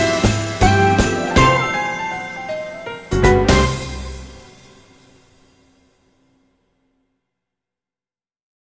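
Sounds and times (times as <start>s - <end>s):
jazz jingle: 0.0s - 5.4s.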